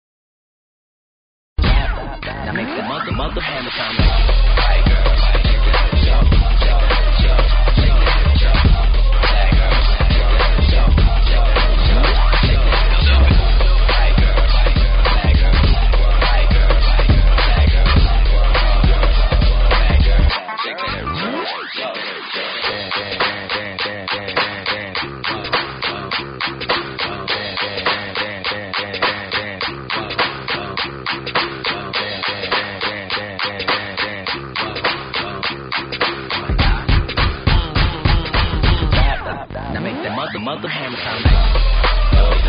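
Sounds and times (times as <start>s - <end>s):
funk music: 1.6s - 42.4s.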